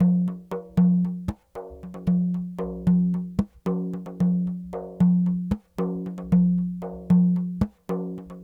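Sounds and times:
small frame drum world percussion: 0.0s - 8.4s.

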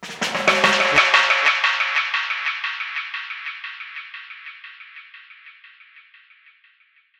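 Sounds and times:
dub drum roll: 0.0s - 2.2s.

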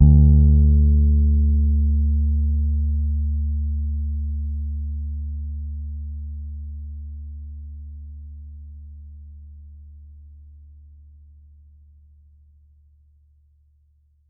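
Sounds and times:
soft D3 note on a Pedulla Thunderbass bass guitar: 0.0s - 5.1s.

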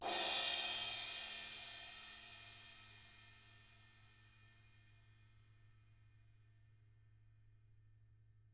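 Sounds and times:
drums played with brushes: 0.0s - 2.3s.

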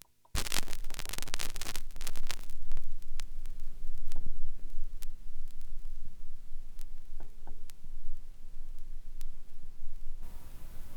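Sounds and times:
vinyl crackle: 0.0s - 10.9s.

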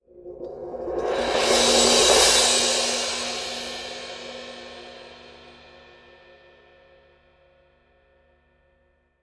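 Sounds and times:
orchestral cymbal crescendo-decrescendo: 1.2s - 6.8s.

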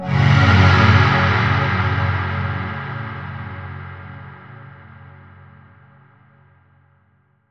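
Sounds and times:
dark synth pad: 0.0s - 5.2s.

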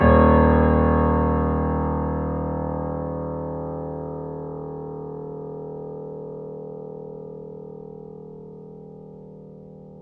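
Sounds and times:
grand piano D sharp 0 note off mic: 0.0s - 4.8s.

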